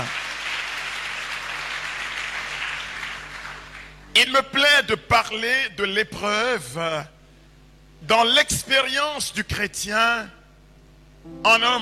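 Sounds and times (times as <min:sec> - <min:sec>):
audience applause: 0:00.0 - 0:03.9
speech: 0:04.2 - 0:07.2, 0:08.0 - 0:10.4, 0:11.2 - 0:11.7.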